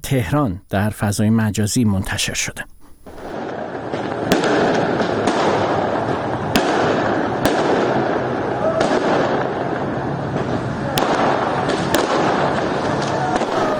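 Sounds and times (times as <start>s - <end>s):
speech: 0.0s - 2.7s
fireworks exploding in Saqqez: 3.0s - 13.7s
crowd noise: 8.4s - 13.7s.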